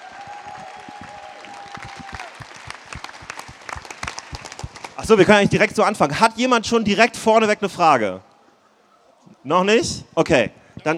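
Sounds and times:
audience applause: 0.0 - 5.0
speech: 5.1 - 8.3, 9.4 - 10.9.

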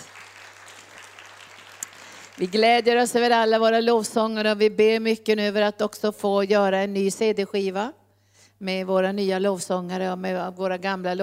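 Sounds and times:
audience applause: 0.0 - 2.6
speech: 2.4 - 8.0, 8.6 - 11.2.

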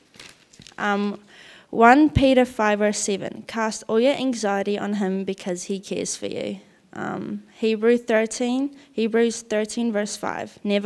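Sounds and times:
sheet of paper being folded: 0.0 - 0.8
speech: 0.8 - 10.8.

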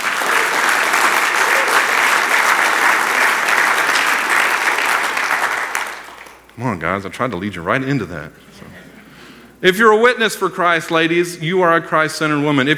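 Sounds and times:
audience applause: 0.0 - 6.6
speech: 6.8 - 8.5, 9.6 - 12.7.

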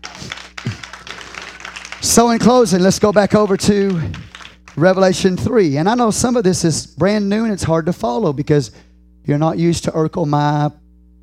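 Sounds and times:
audience hand clapping: 0.0 - 6.2
speech: 2.0 - 10.8.

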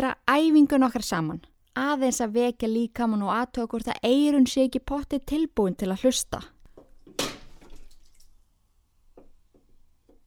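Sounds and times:
speech: 0.0 - 6.6
soft drips and droplet impacts: 6.5 - 10.2
liquid spilling: 6.7 - 8.6.

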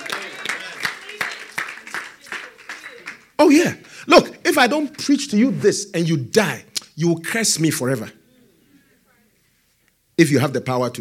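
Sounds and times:
audience clapping in a steady rhythm: 0.0 - 4.0
speech: 3.4 - 8.2, 10.2 - 10.9.

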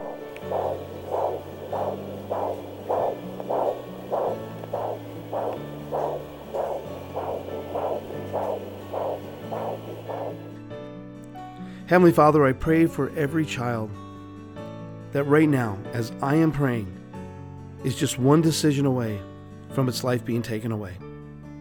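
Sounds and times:
fetal heartbeat on ultrasound at six weeks: 0.0 - 10.5
low electronic hum: 0.0 - 10.5
speech: 11.9 - 14.0, 15.1 - 17.0, 17.8 - 21.1.

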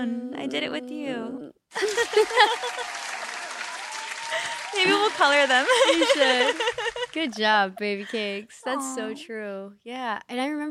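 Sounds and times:
speech: 0.0 - 3.0, 4.3 - 10.6
applause sound effect from a clap button: 1.7 - 7.2
laughter: 1.7 - 8.9
voices cheering: 1.8 - 7.4.

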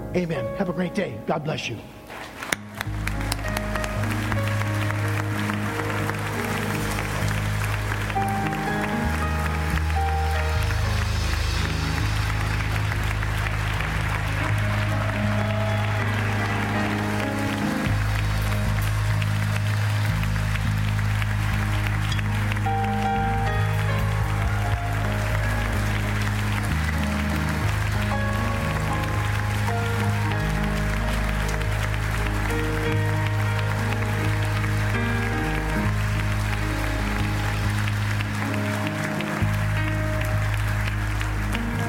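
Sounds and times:
speech: 0.1 - 2.4
audience clapping: 1.7 - 41.8.

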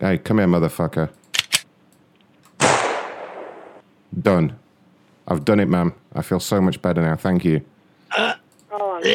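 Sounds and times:
speech: 0.0 - 1.2, 4.2 - 4.6, 5.3 - 8.4, 9.0 - 9.1
gunshots: 2.6 - 3.8.

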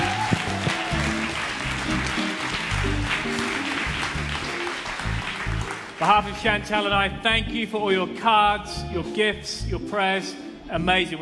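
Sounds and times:
church congregation applause: 0.0 - 7.0
speech: 6.0 - 11.2.

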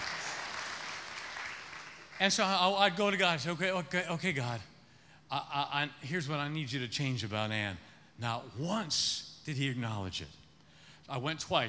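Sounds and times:
woman clapping: 0.0 - 2.2
speech: 2.2 - 4.7, 5.3 - 10.4, 11.1 - 11.6.

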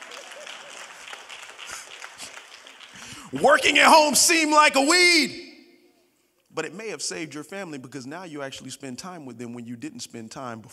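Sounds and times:
audience clapping: 0.0 - 4.6
speech: 3.3 - 5.4, 6.6 - 10.7.

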